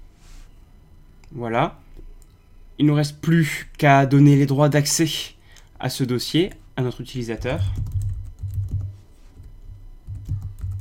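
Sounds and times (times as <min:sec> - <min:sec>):
speech: 0:01.3 - 0:01.8, 0:02.8 - 0:07.9
typing a username on a computer keyboard: 0:07.4 - 0:10.7.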